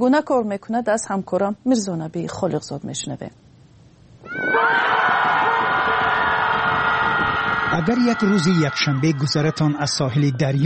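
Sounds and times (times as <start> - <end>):
speech: 0.0 - 3.5, 7.8 - 10.6
group of people shouting together: 4.3 - 9.6.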